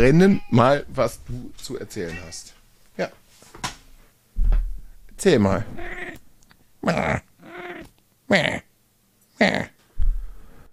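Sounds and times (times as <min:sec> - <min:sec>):
speech: 0:00.0 - 0:03.7, 0:05.2 - 0:06.2, 0:06.8 - 0:07.3, 0:08.3 - 0:08.7, 0:09.4 - 0:09.8
cat vocalizing: 0:05.7 - 0:06.2, 0:06.9 - 0:07.9.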